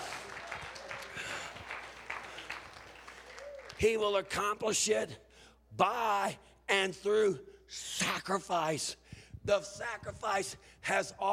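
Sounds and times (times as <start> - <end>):
audience clapping: 0.0 - 4.3
speech: 3.8 - 11.3.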